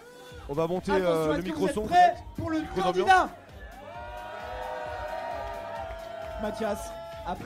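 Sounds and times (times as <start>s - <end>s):
live crowd cheering and applauding: 0.0s - 7.4s
speech: 0.5s - 3.4s, 6.4s - 7.4s
whoops and shouts: 2.0s - 7.4s.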